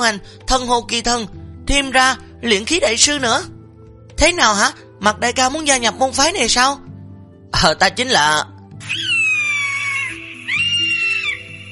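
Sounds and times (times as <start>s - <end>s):
speech: 0.0s - 3.6s, 4.2s - 6.8s, 7.5s - 9.0s
hawk screeching: 8.8s - 11.7s.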